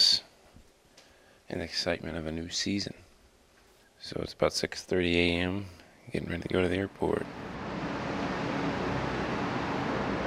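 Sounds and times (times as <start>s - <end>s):
speech: 1.5s - 3.0s, 4.0s - 7.5s
bus engines at an airport: 7.2s - 10.2s.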